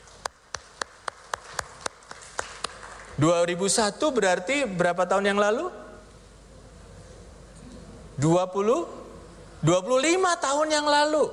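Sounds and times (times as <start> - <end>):
audience applause: 0.5 - 3.2
speech: 3.2 - 5.8, 8.2 - 9.0, 9.6 - 11.3.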